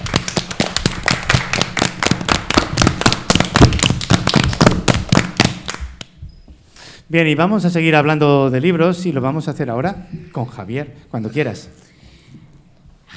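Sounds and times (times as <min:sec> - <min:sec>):
applause: 0:00.0 - 0:06.1
speech: 0:07.1 - 0:11.8.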